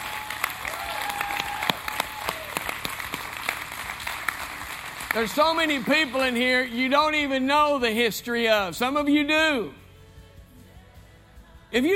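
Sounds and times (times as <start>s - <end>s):
audience applause: 0.0s - 6.5s
speech: 5.2s - 9.8s, 11.7s - 11.9s.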